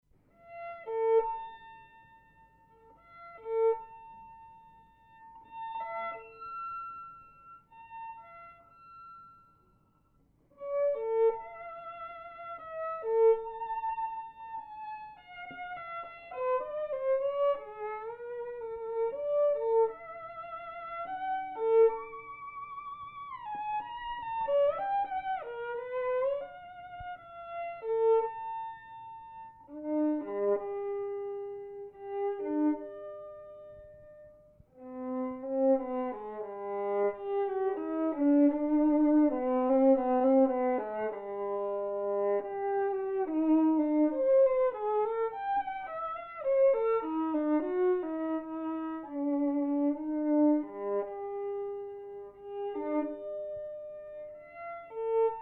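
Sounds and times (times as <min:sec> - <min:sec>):
violin duet: 0:00.4 - 0:09.5, 0:10.6 - 0:55.3.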